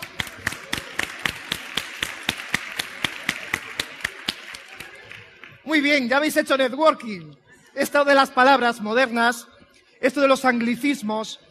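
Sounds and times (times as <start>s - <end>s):
audience applause: 0.0s - 5.6s
speech: 5.7s - 11.5s.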